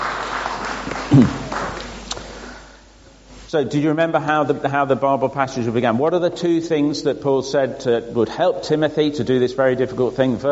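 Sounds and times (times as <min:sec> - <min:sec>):
audience clapping: 0:00.0 - 0:02.6
speech: 0:01.1 - 0:01.5, 0:03.5 - 0:10.5.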